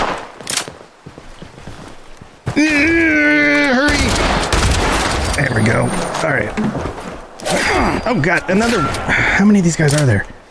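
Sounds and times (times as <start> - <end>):
shotgun fire in a video game: 0.0 - 0.4, 3.9 - 5.6
speech: 2.6 - 3.8, 5.4 - 10.4.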